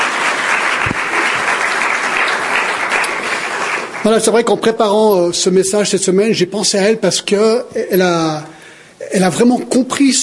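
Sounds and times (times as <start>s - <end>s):
audience applause after a spoken testimony: 0.0s - 4.6s
speech: 4.0s - 10.2s.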